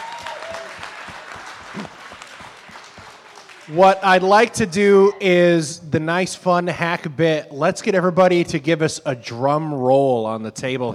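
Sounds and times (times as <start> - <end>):
audience applause at an evening competition with judges: 0.0 - 4.6
speech: 3.7 - 10.9.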